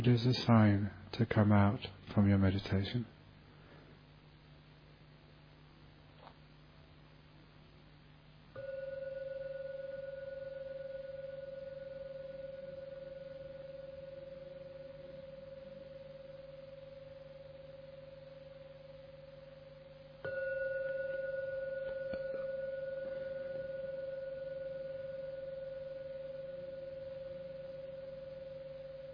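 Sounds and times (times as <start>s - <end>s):
speech: 0.0s - 3.2s
meditation gong ringing: 8.6s - 29.1s.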